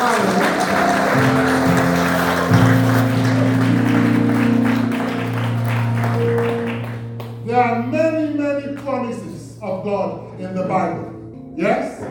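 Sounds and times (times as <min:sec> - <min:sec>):
audience clapping: 0:00.0 - 0:07.6
sustained low organ or keyboard chords: 0:00.0 - 0:12.0.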